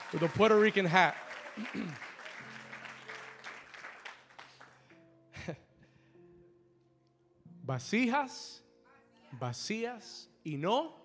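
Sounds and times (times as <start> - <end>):
audience applause: 0.0 - 4.9
speech: 0.1 - 2.0, 7.7 - 8.6, 9.3 - 11.0.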